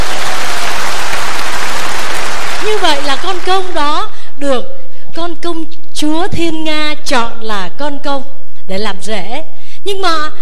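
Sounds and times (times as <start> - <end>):
class of students applauding: 0.0 - 3.8
speech: 3.3 - 4.7, 5.5 - 10.4.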